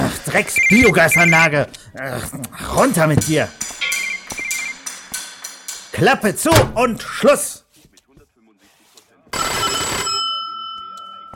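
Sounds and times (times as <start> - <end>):
speech: 0.3 - 3.7, 6.0 - 7.5
doorbell ringing: 9.4 - 11.3.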